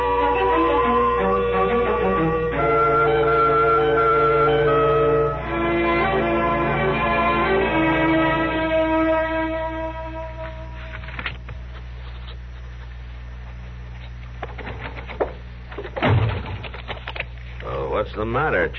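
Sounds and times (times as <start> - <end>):
sustained harmonic tone: 0.0 - 11.2
door slamming: 14.5 - 16.8.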